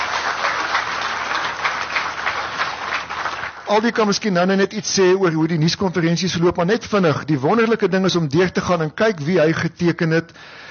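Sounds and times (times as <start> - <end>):
hands clapping: 0.0 - 4.0
speech: 3.7 - 10.6.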